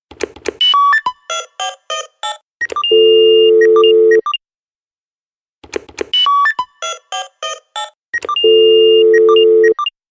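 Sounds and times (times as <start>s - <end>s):
ringtone: 0.7s - 4.4s, 6.2s - 9.9s.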